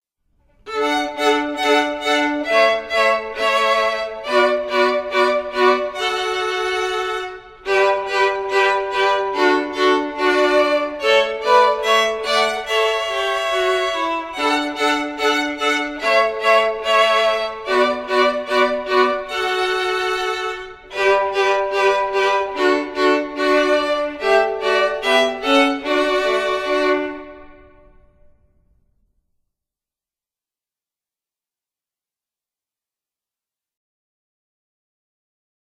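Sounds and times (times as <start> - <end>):
violin playing a Christmas song: 0.6 - 28.2.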